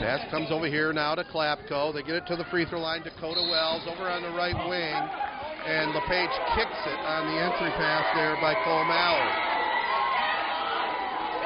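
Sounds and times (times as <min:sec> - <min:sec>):
speech: 0:00.1 - 0:09.5
crowd shouting at a basketball game: 0:03.9 - 0:11.4.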